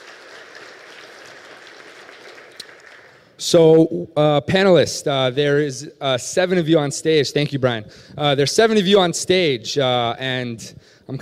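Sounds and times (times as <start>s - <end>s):
audience clapping: 0.0s - 3.4s
speech: 3.4s - 11.2s.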